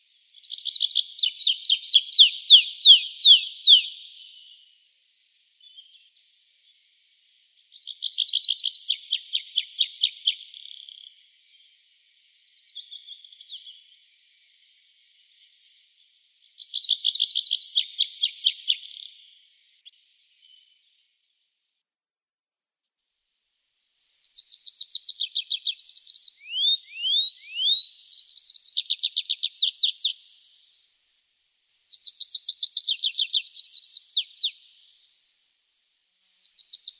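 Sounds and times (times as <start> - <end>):
Tree pipit song: 0.4 - 4.6, 7.7 - 13.9, 16.5 - 20.8, 24.2 - 30.6, 31.9 - 35.0, 36.4 - 36.9.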